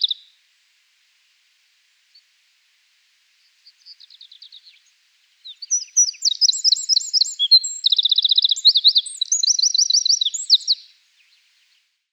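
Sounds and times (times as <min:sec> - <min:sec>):
Eurasian wren song: 0:00.0 - 0:00.3, 0:03.4 - 0:11.9.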